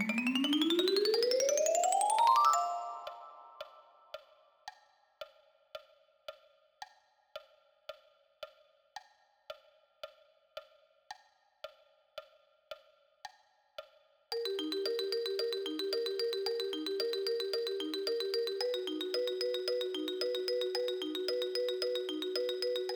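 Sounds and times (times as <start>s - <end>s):
marimba: 0.0s - 3.8s, 14.3s - 22.9s.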